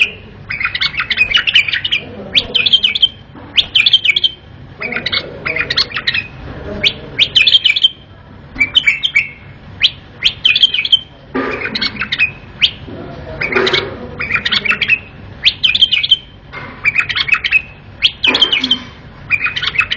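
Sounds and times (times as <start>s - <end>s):
bulbul singing: 0.0s - 19.9s.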